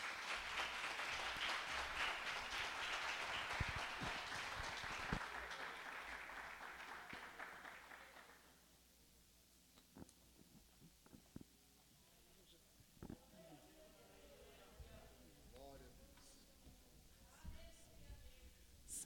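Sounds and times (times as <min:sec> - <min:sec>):
audience applauding: 0:00.0 - 0:08.6.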